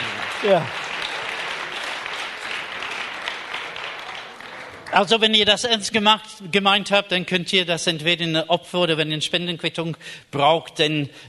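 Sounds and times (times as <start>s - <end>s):
crowd applause: 0.0s - 5.5s
speech: 0.4s - 0.8s, 5.0s - 11.2s.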